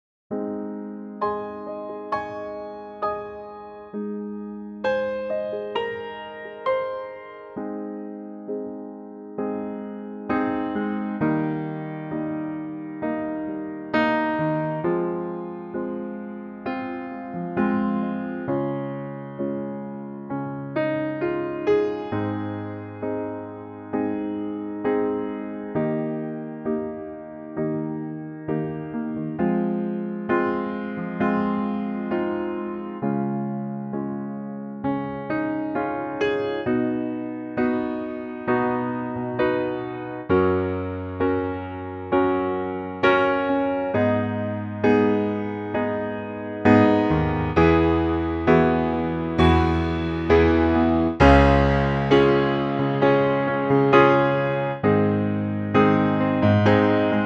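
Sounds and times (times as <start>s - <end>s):
piano: 0.0s - 57.2s.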